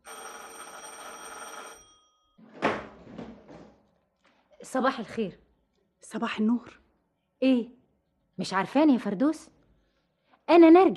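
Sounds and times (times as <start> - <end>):
electric doorbell ringing: 0.0 - 2.4
speech: 4.7 - 5.4, 6.0 - 6.8, 7.4 - 7.8, 8.4 - 9.6, 10.5 - 10.9.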